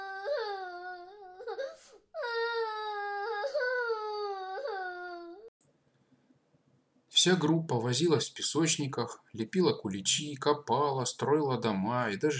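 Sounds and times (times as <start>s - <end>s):
little girl in a kindergarten's youngest group crying quietly: 0.0s - 5.5s
speech: 7.2s - 12.3s.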